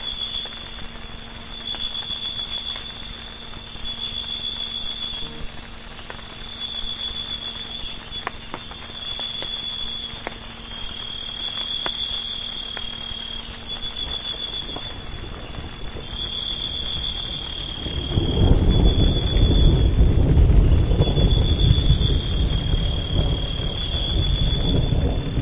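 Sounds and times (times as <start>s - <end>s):
frogs: 0.0s - 25.3s
thunder: 14.6s - 25.3s.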